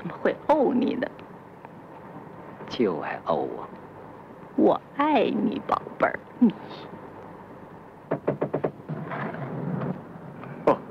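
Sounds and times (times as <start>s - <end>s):
speech: 0.2s - 1.2s, 2.7s - 3.8s, 4.6s - 7.0s
knocking on door: 8.1s - 8.9s.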